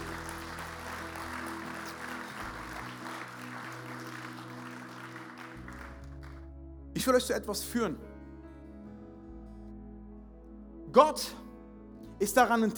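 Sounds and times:
audience applause: 0.0 - 6.4
speech: 7.0 - 8.1, 11.0 - 11.4, 12.2 - 12.7.

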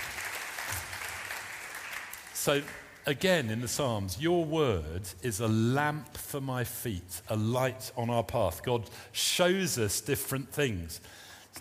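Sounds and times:
audience applause: 0.0 - 2.9
speech: 2.4 - 11.6.

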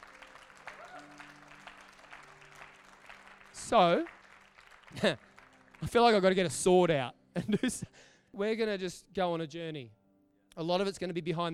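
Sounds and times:
voices cheering and calling out: 0.0 - 1.6
crowd applause: 0.0 - 6.3
speech: 3.7 - 4.2, 4.9 - 5.2, 5.8 - 10.0, 10.6 - 11.5.

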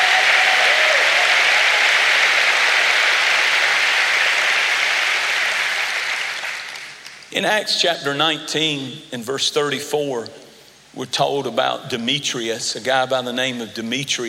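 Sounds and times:
audience clapping hands: 0.0 - 7.3
speech: 7.4 - 10.4, 11.0 - 14.2.

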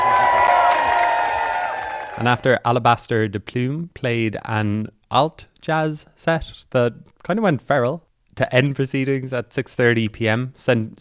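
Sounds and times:
crowd applause and cheering: 0.0 - 2.5
speech: 2.2 - 10.9.

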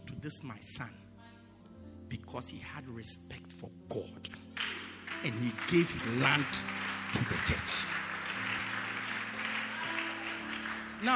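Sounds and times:
speech: 0.2 - 1.0, 2.1 - 4.5, 5.2 - 8.0, 11.0 - 11.1
audience clapping: 4.4 - 11.1.

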